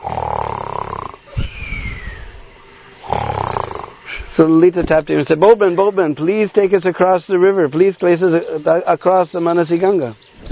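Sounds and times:
sleeping man snoring: 0.0 - 4.4
faint whistling tone: 1.3 - 2.4
speech: 4.4 - 10.4.

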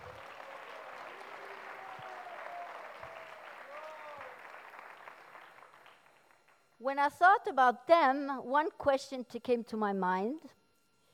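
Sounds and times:
crowd applauding: 0.0 - 6.6
speech: 6.8 - 10.6.

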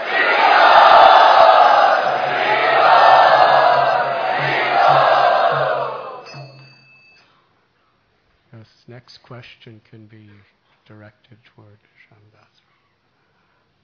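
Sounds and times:
audience cheering loudly to welcome a guest: 0.0 - 6.5
speech: 9.4 - 12.7.

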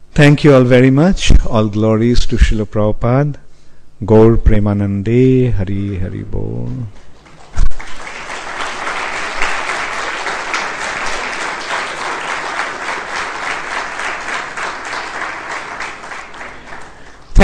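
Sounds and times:
speech: 0.2 - 3.4, 4.0 - 7.0
audience clapping: 6.9 - 17.4.

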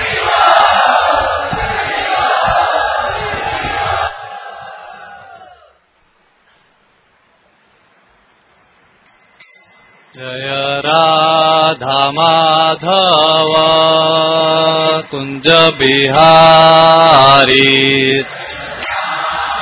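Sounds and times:
crowd chanting loudly to welcome a speaker at a devotional gathering: 0.0 - 5.7, 10.9 - 19.5
speech: 15.1 - 18.4.

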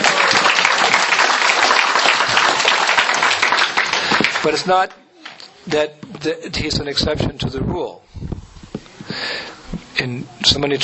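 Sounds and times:
audience round of applause: 0.0 - 4.6
speech: 4.4 - 5.0, 5.6 - 8.4, 9.2 - 10.8.

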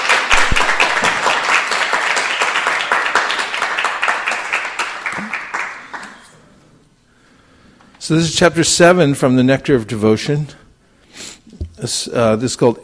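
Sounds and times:
audience applause greeting a speaker at a spiritual lecture gathering: 0.0 - 6.3
speech: 8.1 - 10.6, 11.9 - 12.8.

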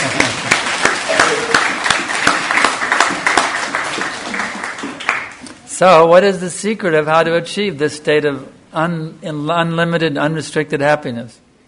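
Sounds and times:
crowd applause: 0.0 - 5.4
speech: 5.8 - 11.4.

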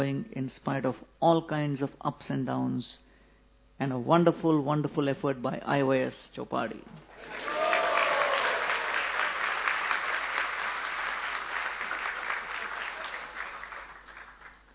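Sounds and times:
speech: 0.0 - 3.1, 3.8 - 7.6
audience applause: 7.2 - 14.7.

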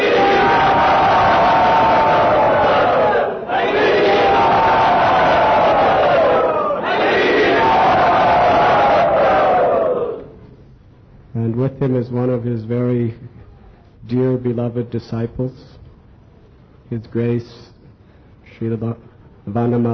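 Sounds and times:
crowd cheering loudly to welcome a guest at Sri Sri Radha Gopinath's temple: 0.0 - 10.3
speech: 11.8 - 13.4, 14.0 - 15.8, 16.9 - 17.7, 18.6 - 19.9.

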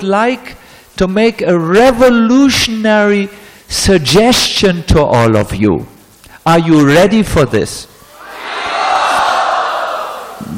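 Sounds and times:
speech: 0.0 - 7.9
audience shouting in joy: 8.1 - 10.5.

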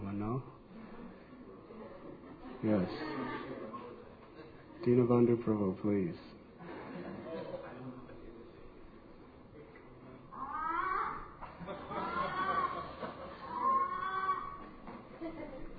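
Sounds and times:
low murmur: 0.0 - 15.7
laughter: 1.7 - 4.8, 6.6 - 8.4, 10.9 - 15.7
speech: 2.6 - 3.4, 4.8 - 6.4
person imitating a frog screaming in pain: 10.4 - 11.4, 13.5 - 14.6.

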